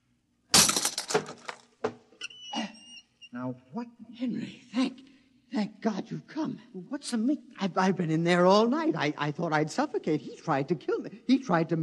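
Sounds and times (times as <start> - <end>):
door lock being smashed: 0.5 - 1.9
debris rattling and breaking: 0.6 - 1.7
speech: 3.3 - 5.0, 5.6 - 11.8.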